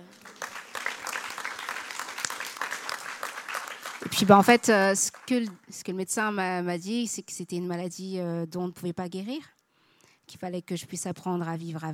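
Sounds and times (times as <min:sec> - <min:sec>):
audience applause: 0:00.0 - 0:05.4
speech: 0:04.0 - 0:09.6, 0:10.4 - 0:11.9.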